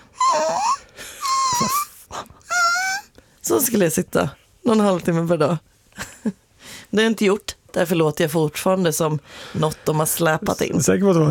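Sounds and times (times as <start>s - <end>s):
voice imitating a whimpering puppy: 0.1s - 3.1s
speech: 3.5s - 11.3s.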